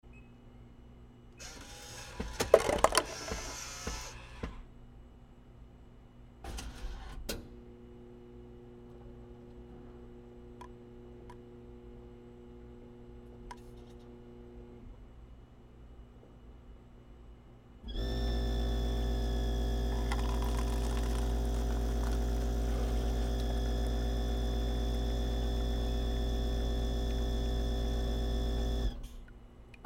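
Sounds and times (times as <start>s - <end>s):
coffee vending machine: 1.4s - 4.0s, 17.9s - 29.0s.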